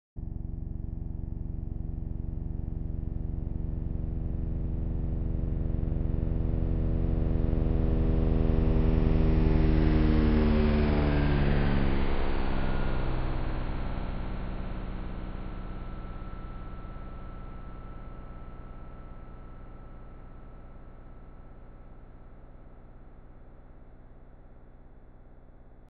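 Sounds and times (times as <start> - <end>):
auralized flyover: 0.2 - 19.9.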